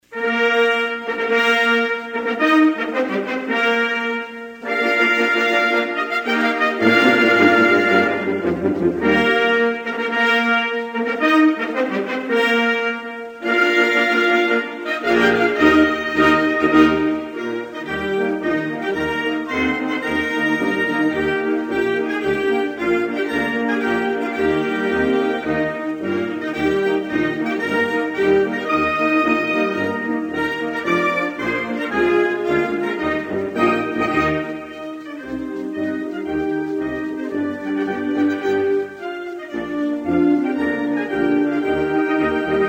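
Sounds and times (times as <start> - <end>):
national anthem: 0.0 - 42.6.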